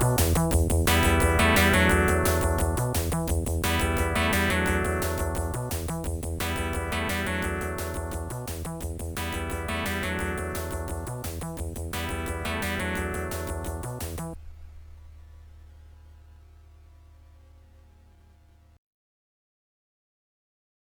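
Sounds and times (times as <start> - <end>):
theme song in English: 0.0 - 14.4.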